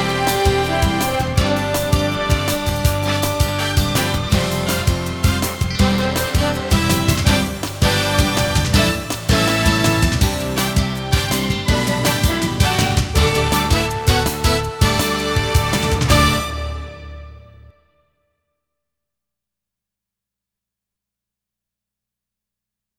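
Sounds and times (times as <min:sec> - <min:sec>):
news intro music: 0:00.0 - 0:17.8.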